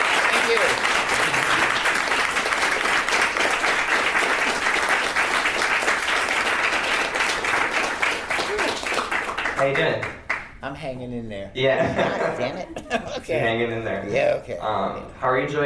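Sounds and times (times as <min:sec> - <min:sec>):
audience applause welcoming a guest onto a stage: 0:00.0 - 0:10.4
laughter: 0:01.1 - 0:01.9, 0:11.6 - 0:13.6
speech: 0:09.6 - 0:15.6.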